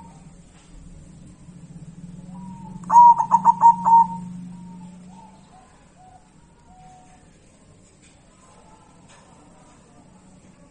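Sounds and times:
zebra dove singing pulsed coos: 0.0 - 7.4.

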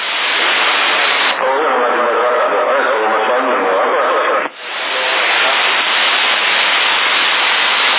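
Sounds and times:
CB radio transmission static with echo effect: 0.0 - 7.9.

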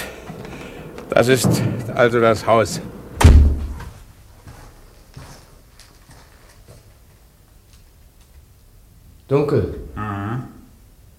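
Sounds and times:
speech: 1.1 - 3.0, 9.3 - 10.1
door thudding shut: 3.2 - 3.9.

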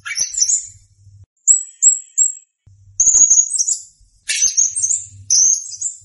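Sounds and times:
blue-crowned hanging parrot giving high trilled phrases: 0.0 - 1.2, 4.2 - 5.9.

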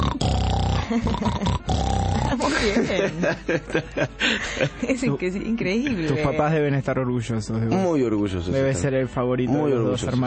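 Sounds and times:
loud rasping snoring with deep grunting rumbles: 0.0 - 2.7
speech: 0.9 - 10.2
laughter: 2.3 - 5.1.

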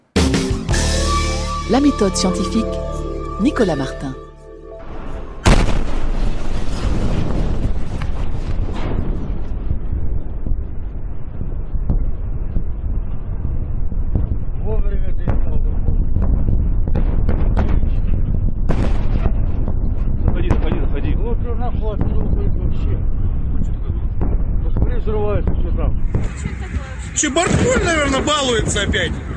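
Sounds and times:
meteor exploding in the sky over Russia: 0.0 - 29.3
people's voices: 1.7 - 4.2, 26.2 - 29.3
speech: 1.7 - 4.2, 28.8 - 29.3
rumbling barrage of repeated blasts and cracks: 4.8 - 29.3.

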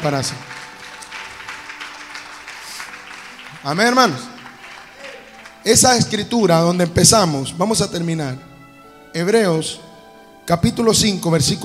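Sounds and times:
speech: 0.0 - 0.8, 3.6 - 4.3, 5.6 - 8.5, 9.1 - 9.8, 10.5 - 11.6
congregation applauding at a church service: 0.0 - 6.9.

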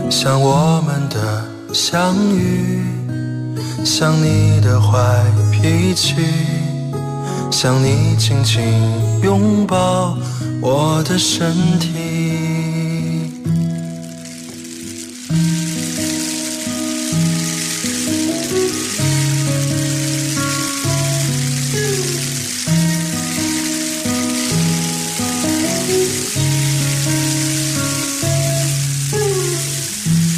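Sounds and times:
speech: 0.1 - 3.2, 3.8 - 6.6, 7.5 - 12.0
rain falling in the early morning: 12.0 - 30.3.

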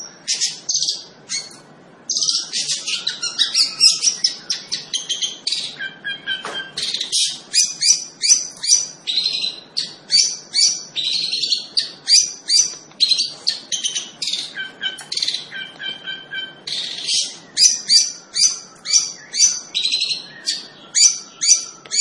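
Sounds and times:
Long-tailed shrike singing lively: 0.0 - 21.9.

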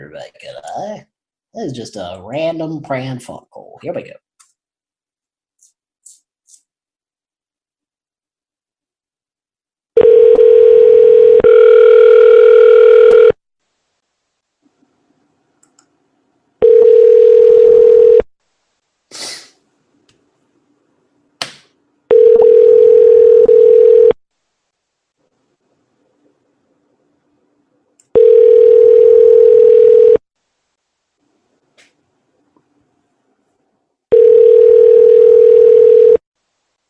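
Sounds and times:
speech: 0.0 - 4.2
telephone tones while placing a prank call: 10.0 - 13.4, 16.6 - 18.3, 22.1 - 24.2, 28.2 - 30.2, 34.1 - 36.2.

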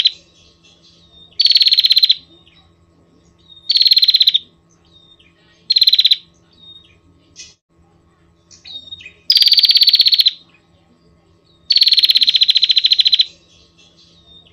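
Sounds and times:
Prinia rattling trills: 0.0 - 14.5.

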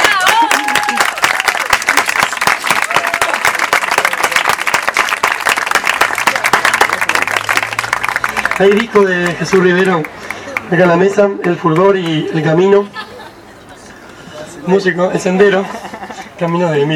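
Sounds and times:
audience applause at a poetry reading: 0.0 - 10.8
speech: 8.6 - 13.0, 14.7 - 15.8, 16.4 - 16.9
laughter: 12.0 - 14.2, 15.3 - 16.4.

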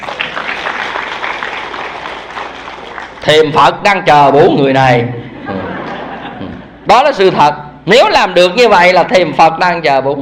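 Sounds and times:
audience applause in a hall during a Buddhist dharma talk: 0.0 - 3.3
speech: 3.2 - 5.2, 6.9 - 10.1
laughter: 5.0 - 6.8.

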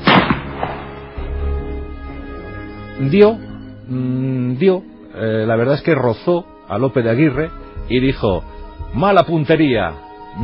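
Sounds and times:
arquebus gunshot: 0.0 - 1.3
speech: 3.0 - 10.4.

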